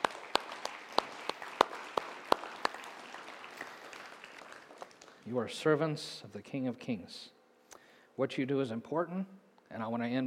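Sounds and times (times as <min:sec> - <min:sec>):
audience applause: 0:00.0 - 0:05.3
speech: 0:05.3 - 0:07.4, 0:08.2 - 0:10.2.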